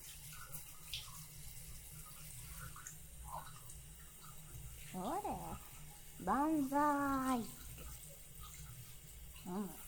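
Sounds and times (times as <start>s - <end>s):
water running from a tap while rinsing someone off at bath time: 0.0s - 9.8s
speech: 5.0s - 7.6s, 9.5s - 9.8s.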